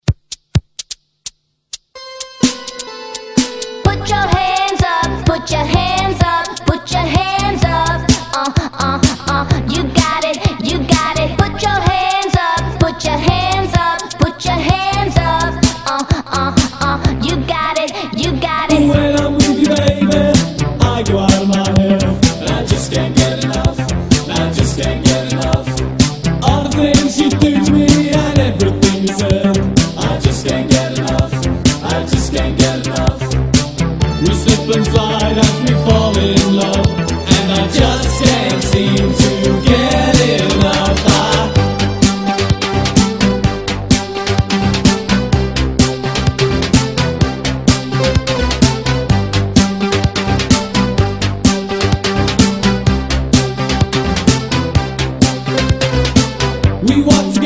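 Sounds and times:
Redrum drum machine beat: 0.0s - 57.4s.

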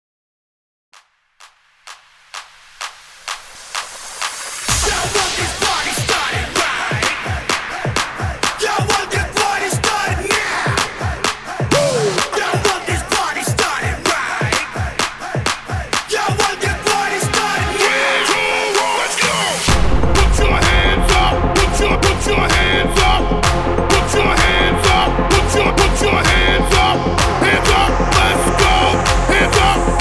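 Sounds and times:
party starter dance music: 1.4s - 29.9s.

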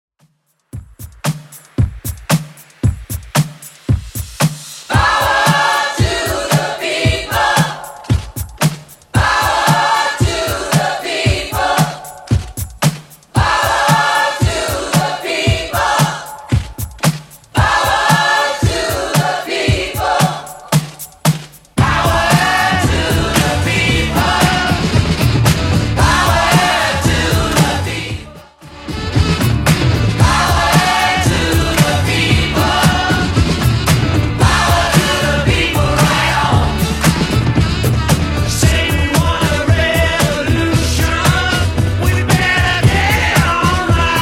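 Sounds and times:
1970s style music at 114 bpm: 0.5s - 44.1s.

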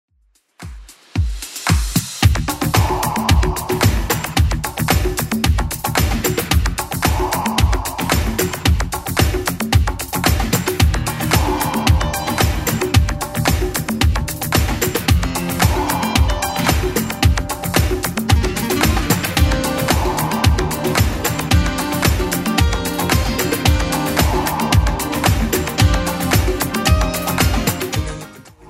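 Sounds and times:
1980s club edit at 112 BPM: 0.6s - 28.5s.

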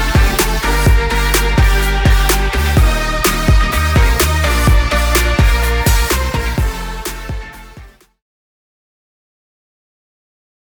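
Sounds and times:
hype music intro at 126 BPM: 0.0s - 8.1s.

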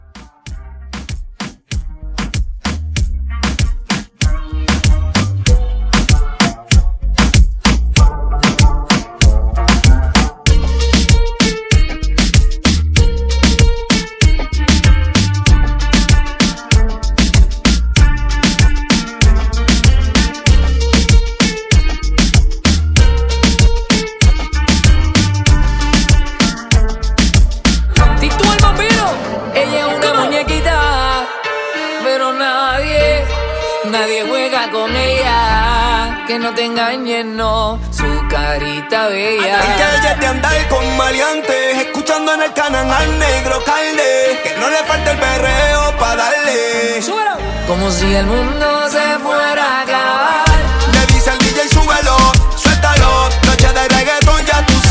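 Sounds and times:
Latin reggaeton club music: 0.0s - 54.8s.

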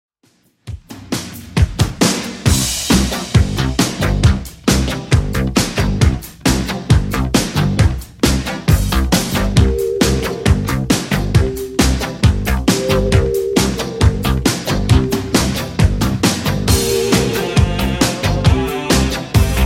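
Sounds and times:
80s Redrum drum machine beat: 0.4s - 19.6s.

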